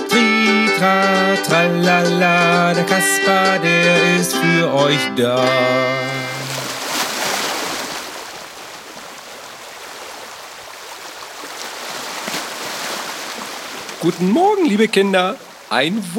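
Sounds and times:
speech: 0.8 - 6.2, 14.0 - 16.1
water around a canoe paddling on the Alster river: 5.8 - 16.1.

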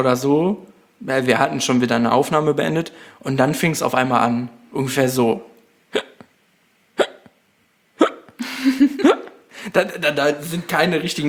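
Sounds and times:
speech: 0.0 - 6.1, 9.8 - 11.2
hard hiccups: 5.9 - 8.4
laughter: 8.4 - 9.8.

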